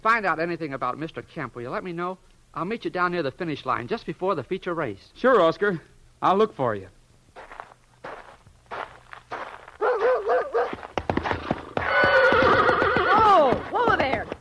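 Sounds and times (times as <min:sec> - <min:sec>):
speech: 0:00.0 - 0:07.5
shuffling hoof and foot noises: 0:07.4 - 0:14.3
dog barking: 0:09.8 - 0:10.9
frightened horse whinnying: 0:11.3 - 0:13.8.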